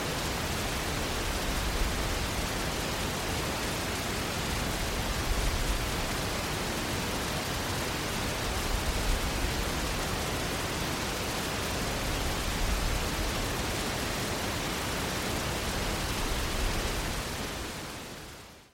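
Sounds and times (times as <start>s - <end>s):
waterfall: 0.0s - 18.7s.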